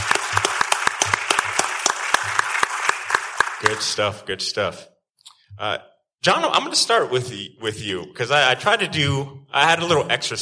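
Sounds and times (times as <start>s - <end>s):
audience clapping at CollectiveCon: 0.0s - 4.1s
speech: 3.6s - 4.9s, 5.6s - 10.3s.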